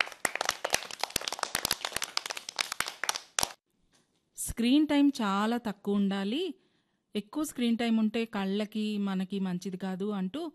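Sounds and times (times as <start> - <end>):
children and audience clapping after songs: 0.0 - 3.6
speech: 4.6 - 10.5.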